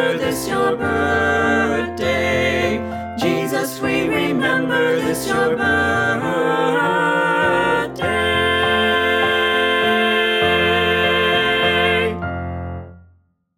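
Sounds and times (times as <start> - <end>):
choir singing: 0.0 - 12.3
vocals with accompaniment: 0.0 - 12.6.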